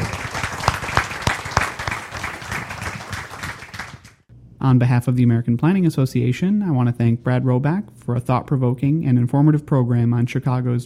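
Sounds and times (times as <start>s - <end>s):
crowd applauding: 0.0s - 4.3s
speech: 4.6s - 10.8s.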